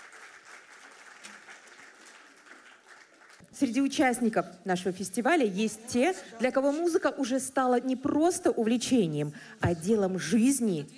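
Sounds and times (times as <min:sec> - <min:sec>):
audience applause: 0:00.0 - 0:03.4
speech: 0:03.6 - 0:10.9.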